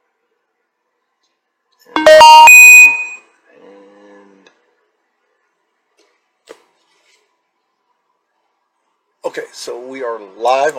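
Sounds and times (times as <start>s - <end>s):
app notification chime: 2.0s - 3.2s
speech: 9.3s - 10.7s.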